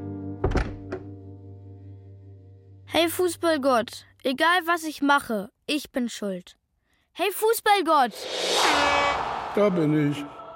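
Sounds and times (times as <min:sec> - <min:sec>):
door closing: 0:00.4 - 0:01.1
speech: 0:02.9 - 0:06.6, 0:07.2 - 0:10.4.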